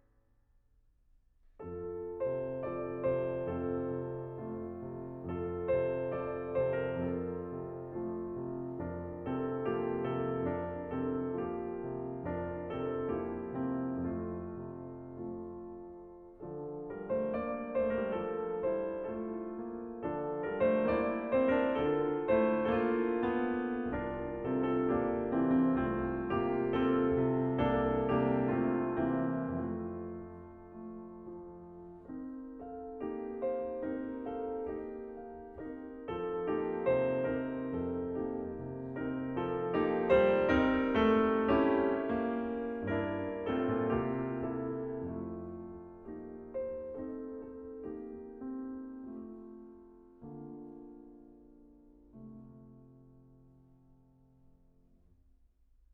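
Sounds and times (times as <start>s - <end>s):
piano lullaby: 1.6s - 54.8s.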